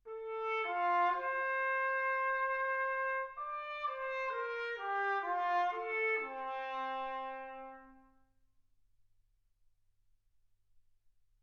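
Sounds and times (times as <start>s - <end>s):
trumpet: 0.0s - 8.4s.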